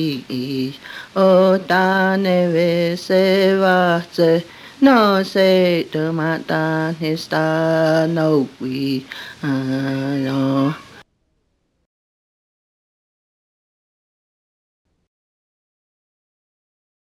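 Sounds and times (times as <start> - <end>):
hymn from a hymnbook: 0.0 - 11.0.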